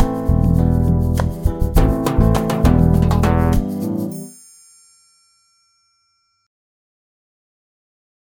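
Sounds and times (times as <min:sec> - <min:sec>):
backing beat: 0:00.0 - 0:04.4.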